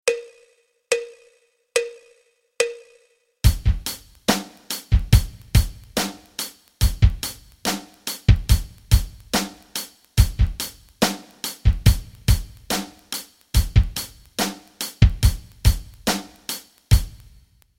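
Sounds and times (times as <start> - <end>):
rock rhythms: 3.4 - 17.5.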